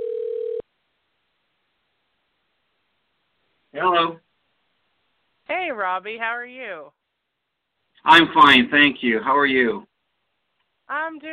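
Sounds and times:
telephone dialing tone: 0.0s - 0.6s
speech: 3.8s - 4.2s, 5.5s - 7.0s, 8.0s - 9.9s, 10.9s - 11.3s.

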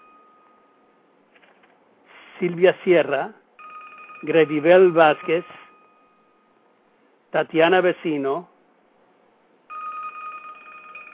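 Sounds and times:
speech: 2.4s - 3.4s, 4.2s - 5.6s, 7.3s - 8.5s
telephone ringing with a high electronic tone: 3.6s - 6.5s, 9.7s - 11.1s.

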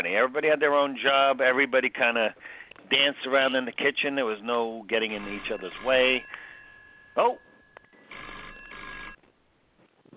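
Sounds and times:
speech: 0.0s - 6.4s, 7.2s - 7.5s
telephone ringing for an incoming caller: 5.0s - 9.2s.

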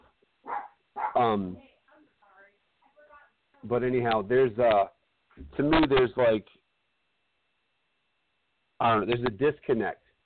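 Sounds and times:
dogs barking: 0.4s - 1.3s
speech: 1.2s - 1.7s, 3.6s - 6.6s, 8.8s - 10.0s.

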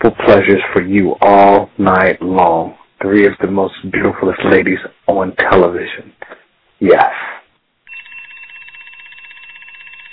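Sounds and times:
speech: 0.4s - 7.3s
alarm clock ringing: 7.9s - 10.1s.

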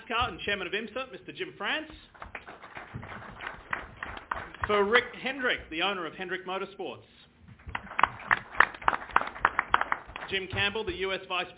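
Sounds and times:
speech: 0.1s - 2.3s, 4.7s - 7.2s, 10.3s - 11.5s
audience applause: 2.1s - 4.9s, 7.7s - 10.4s.

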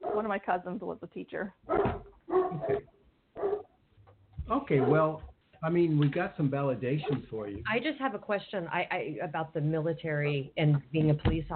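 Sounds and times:
dog barking: 0.0s - 0.3s, 1.7s - 3.7s, 4.7s - 5.2s
speech: 0.2s - 3.0s, 4.5s - 11.5s.

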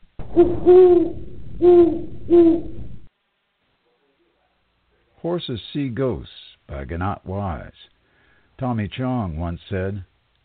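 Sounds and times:
speech: 0.3s - 2.7s, 5.2s - 7.9s, 8.6s - 10.1s
owl hooting: 0.3s - 3.0s.

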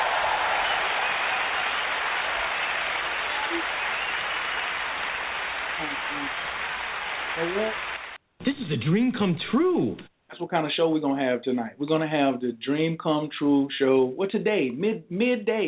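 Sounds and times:
audience applause: 0.0s - 8.2s
speech: 5.8s - 6.5s, 7.4s - 7.9s, 8.7s - 15.6s.

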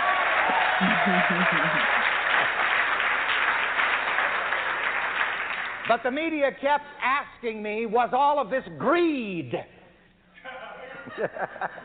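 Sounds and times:
audience applause: 0.0s - 5.9s
laughter: 0.5s - 2.1s, 10.4s - 11.8s
speech: 1.0s - 2.0s, 5.9s - 9.8s, 11.2s - 11.8s.

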